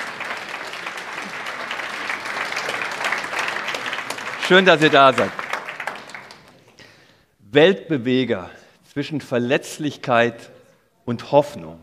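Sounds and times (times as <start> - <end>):
audience applause: 0.0 - 6.8
speech: 4.5 - 5.4, 7.5 - 10.5, 11.1 - 11.8.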